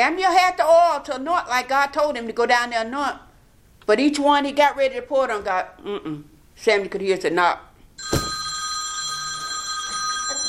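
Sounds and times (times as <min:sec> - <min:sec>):
speech: 0:00.0 - 0:03.3, 0:03.9 - 0:08.2
telephone ringing: 0:08.0 - 0:10.4.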